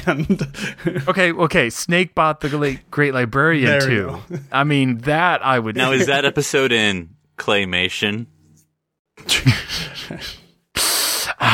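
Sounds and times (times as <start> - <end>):
laughter: 0.0 - 1.2, 5.5 - 6.7, 9.3 - 10.5
speech: 0.0 - 8.3, 9.2 - 10.4
voice imitating an alien creature's hissing: 10.8 - 11.5.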